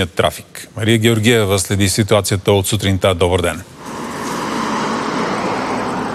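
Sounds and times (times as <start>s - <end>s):
speech: 0.0s - 3.8s
heavy car traffic at the Kapitan Andreevo border checkpoint: 3.7s - 6.1s.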